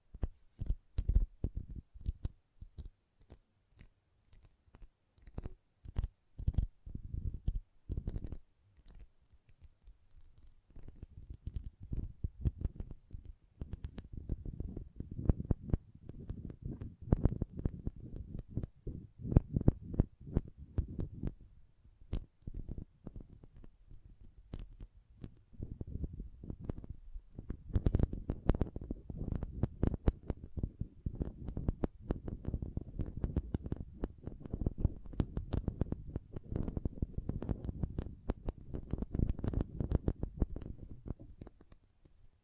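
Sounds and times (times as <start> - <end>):
magnetic tingles crisp clicks and taps: 0.0 - 21.4, 22.1 - 42.4
soft low crackling rumble: 10.7 - 41.7.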